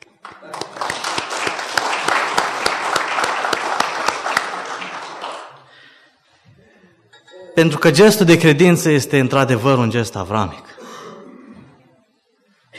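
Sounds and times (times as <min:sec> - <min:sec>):
crowd applauding: 0:00.0 - 0:06.0
speech: 0:07.6 - 0:10.7.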